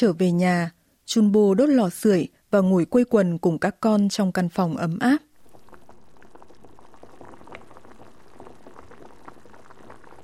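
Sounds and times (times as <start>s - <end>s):
speech: 0.0s - 5.3s
milk boiling on a stove: 5.3s - 10.2s.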